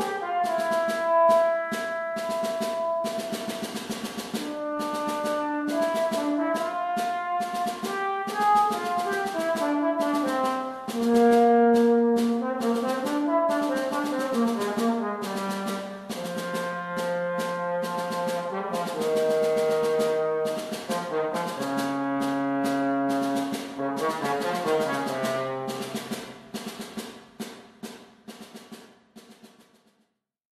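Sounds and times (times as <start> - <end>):
solo trombone playing: 0.0 - 26.3.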